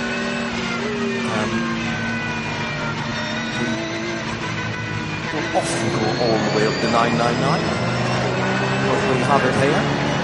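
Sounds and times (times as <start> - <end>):
race car engines passing on track: 0.0 - 10.2
speech: 5.6 - 7.9, 8.9 - 10.0.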